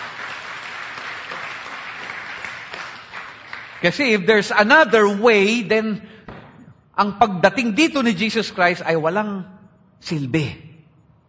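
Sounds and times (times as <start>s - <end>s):
church congregation applauding during a sermon: 0.0s - 5.4s
speech: 3.8s - 6.1s, 7.0s - 10.7s.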